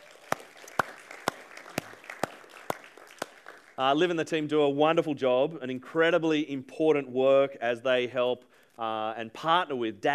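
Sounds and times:
audience applause: 0:00.0 - 0:03.8
speech: 0:03.8 - 0:10.1.

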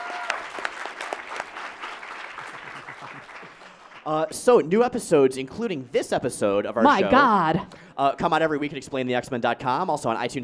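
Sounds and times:
crowd clapping: 0:00.0 - 0:04.6
speech: 0:04.0 - 0:10.4.

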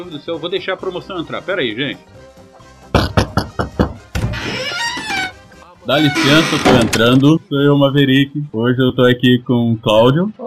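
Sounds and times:
speech: 0:00.0 - 0:03.0, 0:05.9 - 0:10.4
loud knocking on a door: 0:02.9 - 0:04.4.

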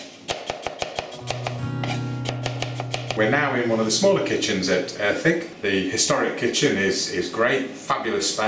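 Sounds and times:
knife chopping peeled cored fruit on a board: 0:00.3 - 0:03.2
speech: 0:03.2 - 0:08.4.

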